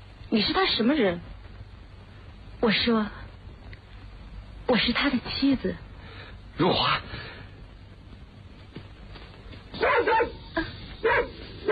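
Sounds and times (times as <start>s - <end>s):
low noise: 0.0s - 11.6s
speech: 0.3s - 1.4s, 2.6s - 3.2s, 4.7s - 5.8s, 6.6s - 7.2s
dog barking: 9.8s - 11.6s.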